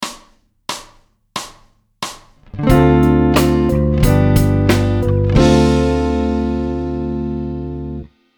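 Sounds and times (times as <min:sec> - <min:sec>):
musical chord: 0:02.6 - 0:08.1.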